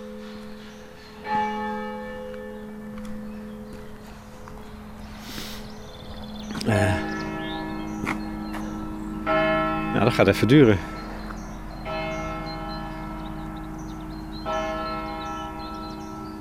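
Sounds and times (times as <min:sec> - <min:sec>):
church bell striking nine o'clock: 0:00.0 - 0:16.3
speech: 0:10.2 - 0:11.0.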